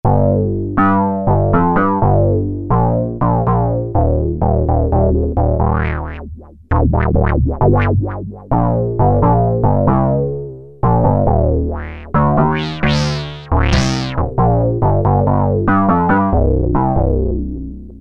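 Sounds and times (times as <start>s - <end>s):
bass: 0.0s - 18.0s.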